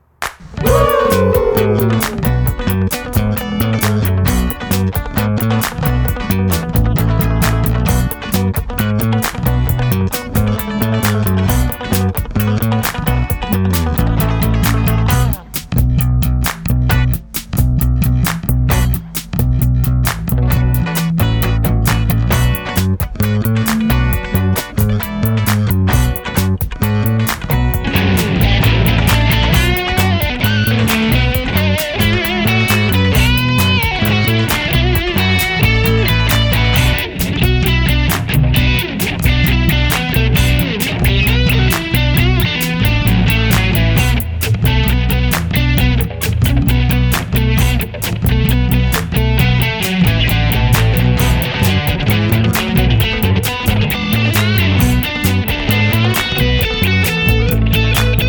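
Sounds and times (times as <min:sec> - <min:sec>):
funk music stems: 0:00.4 - 0:58.2.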